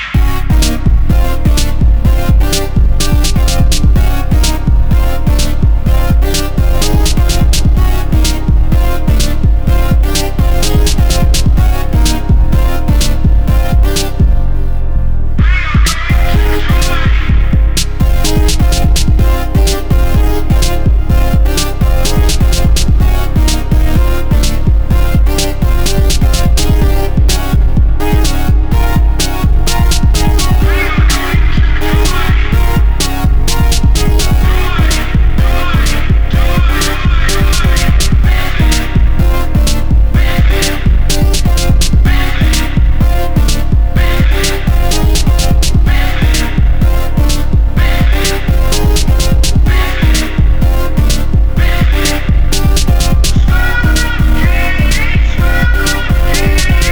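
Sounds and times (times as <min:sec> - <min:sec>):
instrumental music: 0:00.2 - 0:56.8.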